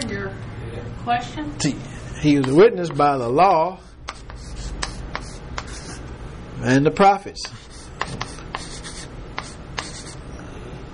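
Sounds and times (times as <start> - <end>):
speech: 1.0 - 3.8, 6.6 - 7.7
pen scratching on paper writing notes: 4.1 - 6.0, 7.4 - 10.2.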